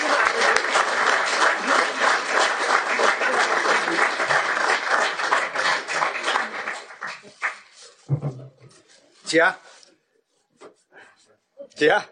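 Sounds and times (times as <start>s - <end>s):
audience applause: 0.0s - 8.0s
speech: 9.3s - 9.6s, 11.8s - 12.1s.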